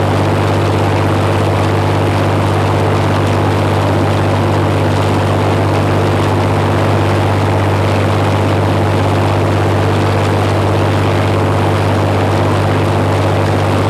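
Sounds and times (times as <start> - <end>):
plane: 0.0 - 13.8.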